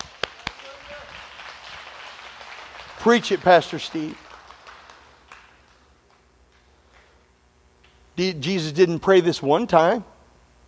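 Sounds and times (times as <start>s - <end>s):
audience clapping: 0.0s - 7.1s
speech: 3.0s - 4.2s, 8.2s - 10.1s.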